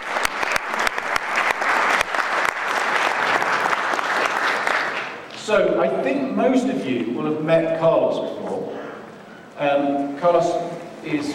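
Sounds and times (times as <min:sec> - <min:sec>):
crowd applause: 0:00.0 - 0:05.3
speech: 0:05.5 - 0:08.8, 0:09.6 - 0:11.3.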